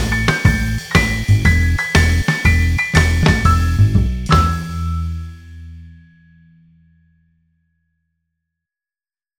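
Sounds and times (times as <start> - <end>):
blues in E: 0.0 - 6.6.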